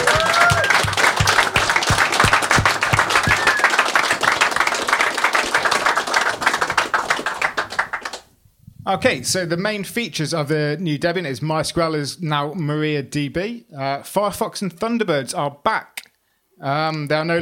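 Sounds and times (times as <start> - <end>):
round of applause from audience: 0.0 - 8.3
speech: 8.9 - 16.0, 16.6 - 17.4.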